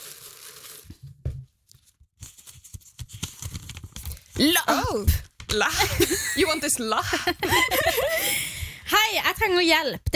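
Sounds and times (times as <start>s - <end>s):
paper slip being drawn from a pile of notes: 0.0s - 4.4s
speech: 4.4s - 8.4s, 9.2s - 10.1s
laughter: 5.7s - 8.5s.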